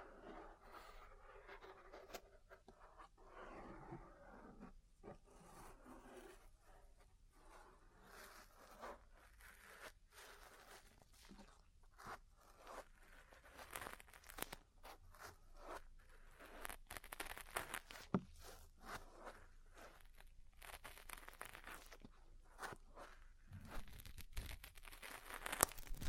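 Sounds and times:
crackly rustling and scratching during ear cleaning: 0.0s - 26.0s.

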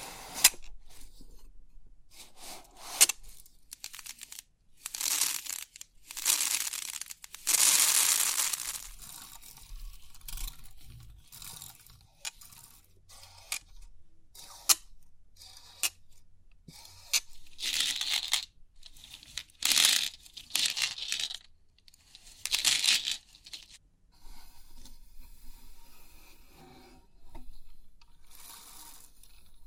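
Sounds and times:
3D pin art toy crinkly rustling: 2.8s - 12.4s, 17.3s - 23.8s.

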